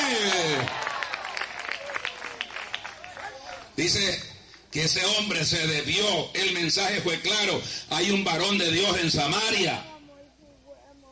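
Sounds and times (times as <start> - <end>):
audience applauding: 0.0 - 3.8
speech: 3.8 - 9.9.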